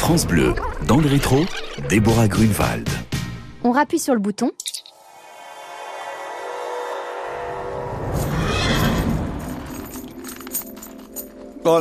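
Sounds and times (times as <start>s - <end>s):
speech: 0.1s - 4.6s
old mare about to foal neighing in a stable: 0.4s - 2.2s, 8.2s - 9.7s.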